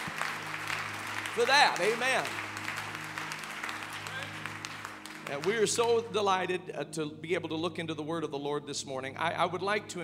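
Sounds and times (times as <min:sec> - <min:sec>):
audience clapping hands: 0:00.0 - 0:06.1
speech: 0:01.4 - 0:02.4, 0:05.3 - 0:10.0.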